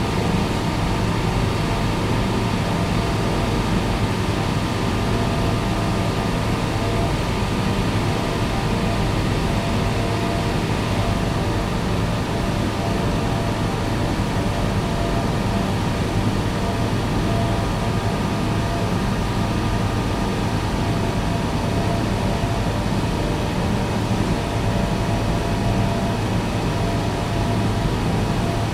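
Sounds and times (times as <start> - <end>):
industrial plant room ambience: 0.0 - 28.7.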